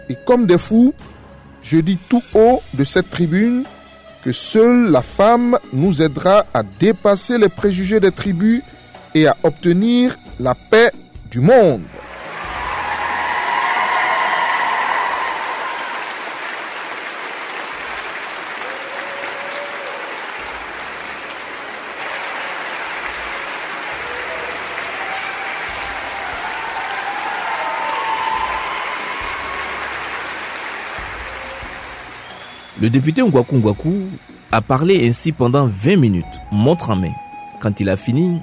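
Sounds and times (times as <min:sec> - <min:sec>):
speech: 0:00.1 - 0:12.0, 0:32.8 - 0:38.4
cheering and excited voices: 0:12.0 - 0:33.6
crowd bursting into joyful applause: 0:12.0 - 0:34.8.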